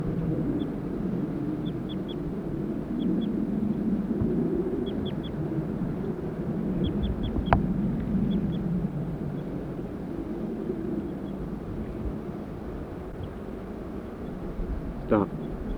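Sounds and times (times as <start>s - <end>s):
male and female birds calling: 0.0s - 15.7s.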